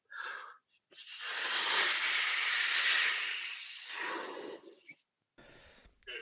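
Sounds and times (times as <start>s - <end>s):
person blowing up a rubber balloon: 0.1s - 5.0s.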